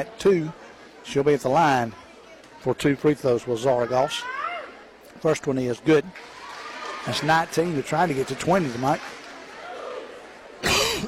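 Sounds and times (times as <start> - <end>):
speech: 0.0 - 2.0, 2.6 - 4.4, 5.2 - 6.4, 7.0 - 9.2
crowd murmur: 0.0 - 5.2, 6.2 - 11.0
person coughing: 10.6 - 11.0.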